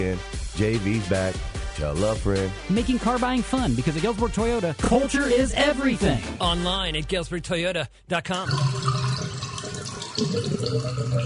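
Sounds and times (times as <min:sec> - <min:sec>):
speech: 0:00.0 - 0:09.0, 0:10.2 - 0:11.2
water gurgling down a drain: 0:08.5 - 0:11.2.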